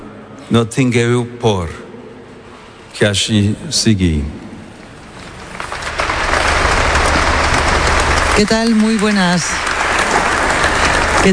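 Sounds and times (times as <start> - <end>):
speech: 0.5 - 1.8, 3.0 - 4.4, 8.4 - 9.7
applause after a papal speech: 5.1 - 11.3.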